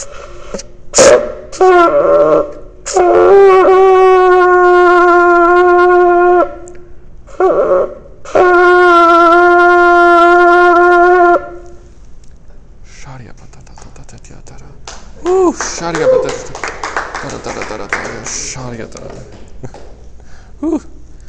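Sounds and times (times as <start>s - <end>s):
ram's horn shofar being blown: 1.0s - 6.6s, 7.3s - 11.8s
man speaking: 12.9s - 19.4s.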